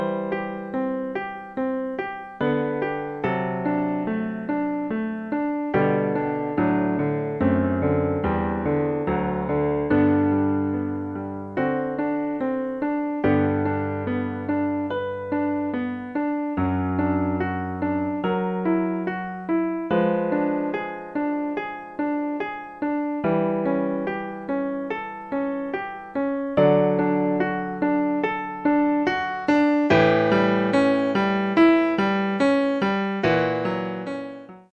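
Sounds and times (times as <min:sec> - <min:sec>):
sacred piano piece: 0:00.0 - 0:34.7.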